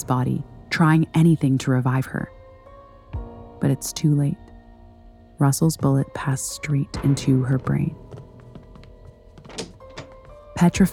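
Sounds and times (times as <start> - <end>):
speech: 0.0 - 2.4, 3.6 - 4.4, 5.4 - 8.0, 10.6 - 10.9
trailer door closing: 9.4 - 10.4.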